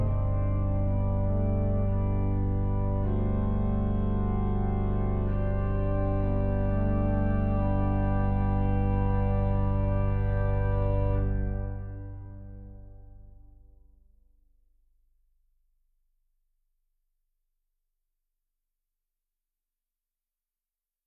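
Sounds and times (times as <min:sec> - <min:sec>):
organ with 32 and sesquialtera stops: 0:00.0 - 0:13.2.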